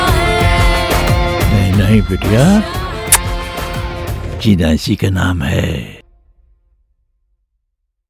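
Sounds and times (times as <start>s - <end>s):
promo song: 0.0s - 6.0s.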